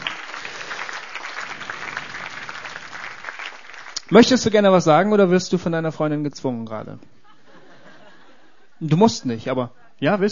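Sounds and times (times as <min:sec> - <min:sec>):
audience applause: 0:00.0 - 0:04.4
speech: 0:04.1 - 0:07.2, 0:08.8 - 0:10.2.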